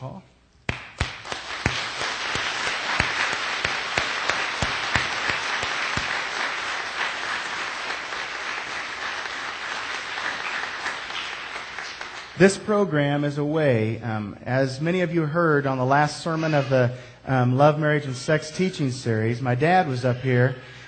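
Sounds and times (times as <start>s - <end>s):
speech: 0.0s - 0.4s, 12.4s - 20.8s
audience applause: 0.7s - 12.5s.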